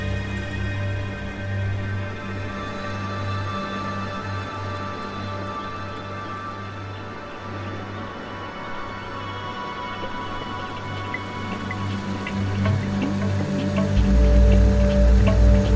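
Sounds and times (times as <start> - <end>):
ambient music of sustained tones and low drone: 0.0 - 15.7
deep rumble: 12.5 - 15.7.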